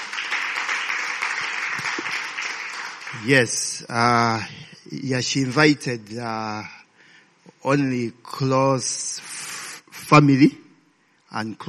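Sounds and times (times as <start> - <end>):
audience hand clapping: 0.0 - 3.6
speech: 3.1 - 6.8, 7.6 - 9.4, 10.1 - 10.6, 11.3 - 11.6.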